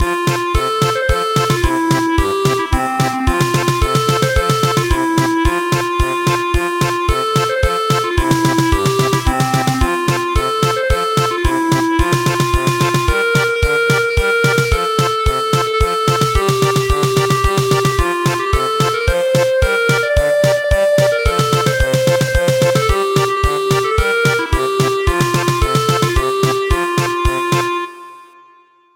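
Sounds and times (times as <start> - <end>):
German polka music: 0.0 - 28.0.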